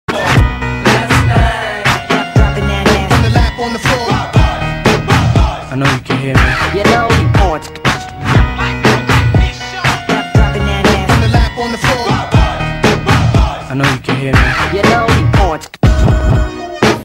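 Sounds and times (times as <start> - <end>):
hip hop party music: 0.1 - 17.0.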